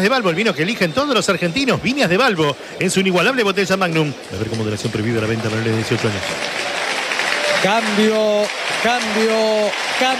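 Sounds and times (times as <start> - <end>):
speech: 0.0 - 6.6, 7.6 - 10.1
stadium crowd standing ovation: 0.0 - 10.1.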